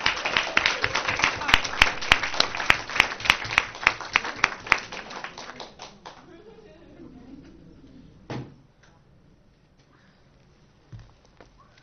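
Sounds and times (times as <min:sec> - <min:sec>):
round of applause: 0:00.0 - 0:06.4.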